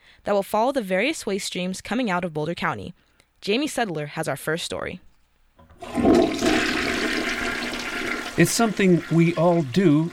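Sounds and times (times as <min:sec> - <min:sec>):
speech: 0:00.2 - 0:05.1, 0:08.4 - 0:10.1
toilet flushing: 0:05.6 - 0:10.1.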